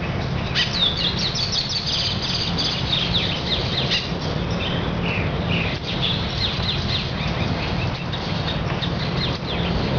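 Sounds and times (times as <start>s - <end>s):
jungle ambience: 0.0s - 9.9s.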